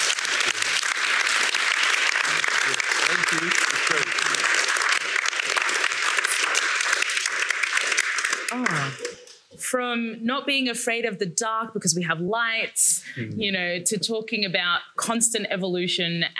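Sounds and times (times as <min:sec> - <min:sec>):
audience round of applause: 0:00.0 - 0:09.4
speech: 0:09.7 - 0:16.3.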